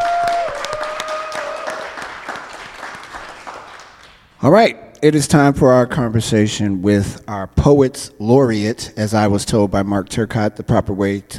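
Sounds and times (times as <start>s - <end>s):
crowd applauding: 0.0s - 4.3s
speech: 4.4s - 11.3s.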